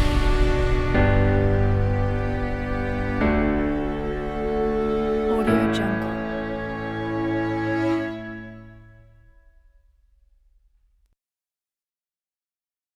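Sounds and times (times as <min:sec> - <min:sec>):
epic motivational orchestral corporate music: 0:00.0 - 0:09.2.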